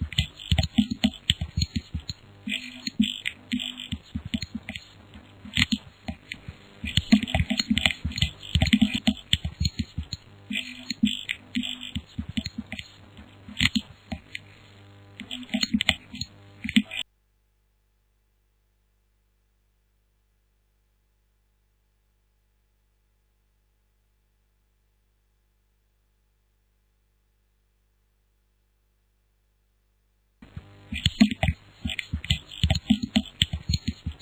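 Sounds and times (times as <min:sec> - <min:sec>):
noise beats instrumental: 0:00.0 - 0:17.0, 0:30.4 - 0:34.2.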